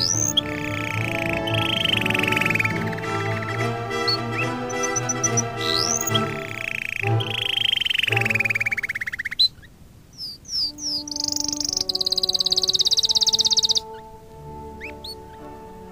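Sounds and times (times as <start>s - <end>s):
canary singing: 0.0s - 15.8s.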